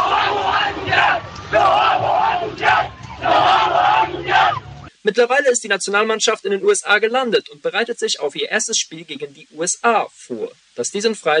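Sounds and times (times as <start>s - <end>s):
fans cheering: 0.0s - 4.9s
speech: 5.0s - 11.3s.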